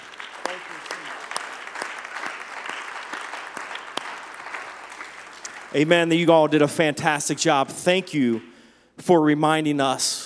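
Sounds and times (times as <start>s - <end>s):
audience clapping: 0.0s - 6.8s, 7.4s - 8.6s
speech: 5.7s - 10.2s.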